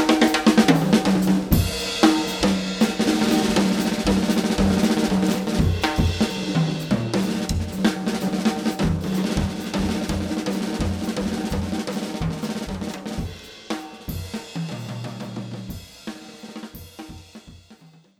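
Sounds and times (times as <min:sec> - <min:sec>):
jazz music: 0:00.0 - 0:13.3.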